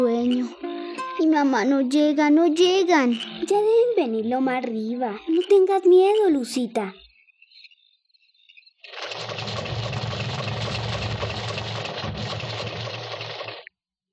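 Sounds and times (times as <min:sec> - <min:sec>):
speech: 0:00.0 - 0:00.7, 0:01.3 - 0:07.0
truck or car engine passing on road: 0:09.0 - 0:13.6.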